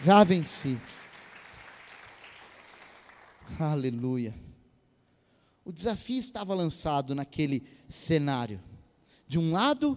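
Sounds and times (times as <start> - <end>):
speech: 0.0 - 1.0, 3.5 - 4.5, 5.6 - 8.7, 9.3 - 9.9
audience applause: 0.0 - 3.5.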